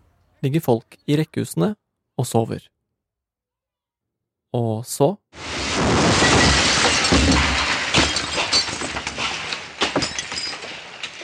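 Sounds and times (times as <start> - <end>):
speech: 0.4 - 2.7, 4.5 - 6.6
explosion blowing out windows: 5.4 - 9.3
glass fragments and debris clattering down: 5.4 - 11.2
glass shattering: 5.4 - 11.2.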